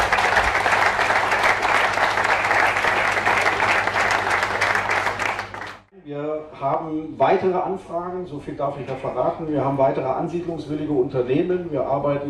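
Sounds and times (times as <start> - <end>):
audience applause at a municipal event: 0.0 - 5.9
speech: 6.6 - 12.2.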